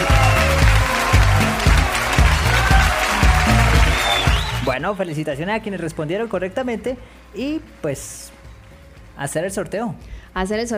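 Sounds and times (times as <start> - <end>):
audience applause: 0.0 - 4.8
speech: 4.8 - 8.4, 9.2 - 10.7.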